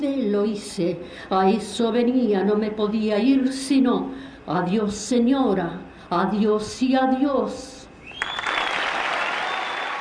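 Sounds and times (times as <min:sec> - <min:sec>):
speech: 0:00.0 - 0:07.8
audience applause after a poetry recitation: 0:08.2 - 0:09.9.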